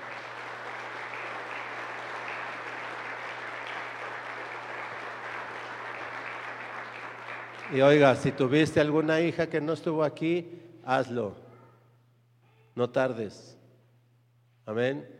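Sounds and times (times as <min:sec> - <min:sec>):
audience applause: 0:00.0 - 0:08.5
speech: 0:07.7 - 0:11.4, 0:12.8 - 0:13.6, 0:14.7 - 0:15.1.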